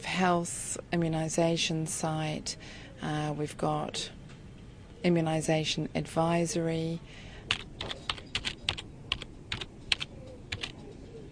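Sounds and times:
speech: 0.2 - 4.2, 5.0 - 8.0
typing on a computer keyboard while entering search terms: 7.5 - 10.8.

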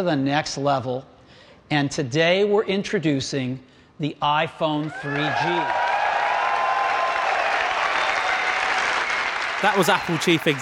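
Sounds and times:
speech: 0.0 - 1.1, 1.7 - 5.8, 9.6 - 10.6
crowd cheering and applauding: 4.9 - 10.6.

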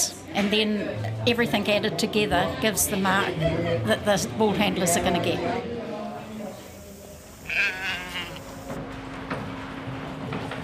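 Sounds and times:
murmur of voices: 0.0 - 8.8
speech: 0.4 - 5.8
sheep bleating in the sheepyards: 7.4 - 8.7.

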